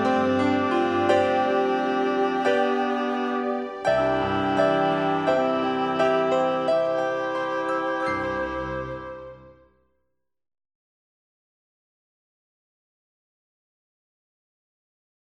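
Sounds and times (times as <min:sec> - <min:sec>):
easy listening and classical music: 0:00.0 - 0:09.8.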